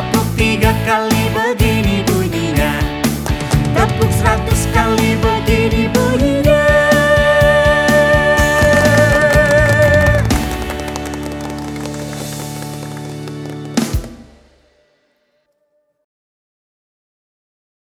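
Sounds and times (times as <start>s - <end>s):
children's song: 0.0s - 10.5s.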